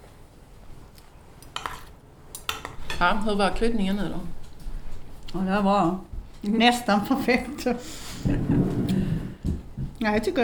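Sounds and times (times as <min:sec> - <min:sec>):
dishes and cutlery clinking as a kitchen is cleared: 0:01.5 - 0:03.1
speech: 0:03.0 - 0:04.4, 0:05.3 - 0:08.7, 0:10.0 - 0:10.4.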